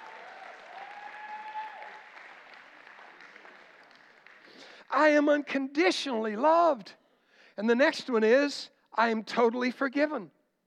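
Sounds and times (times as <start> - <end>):
audience cheering: 0.0 - 3.9
audience clapping: 0.0 - 4.9
speech: 4.9 - 7.0, 7.6 - 10.4.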